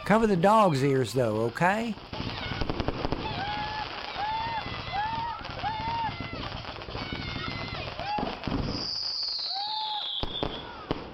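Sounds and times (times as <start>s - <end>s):
fireworks exploding in crackling pops: 0.0s - 11.1s
speech: 0.1s - 2.3s.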